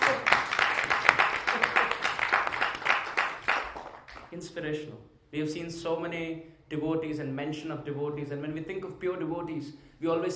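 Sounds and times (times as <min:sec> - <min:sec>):
audience applause: 0:00.0 - 0:04.3
speech: 0:04.4 - 0:10.3.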